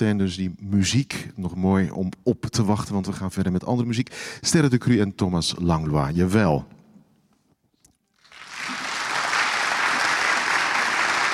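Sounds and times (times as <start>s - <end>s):
speech: 0.0s - 6.8s
audience applause: 8.2s - 11.3s.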